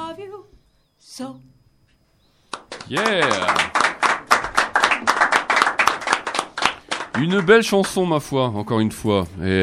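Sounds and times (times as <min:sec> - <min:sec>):
speech: 0:01.1 - 0:01.6, 0:02.9 - 0:03.8, 0:07.2 - 0:09.6
audience applause after a song: 0:02.6 - 0:08.0.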